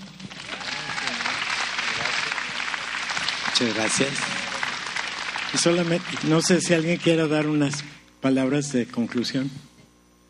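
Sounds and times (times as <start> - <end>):
crowd clapping: 0.0 - 8.0
speech: 3.6 - 4.3, 5.5 - 9.7.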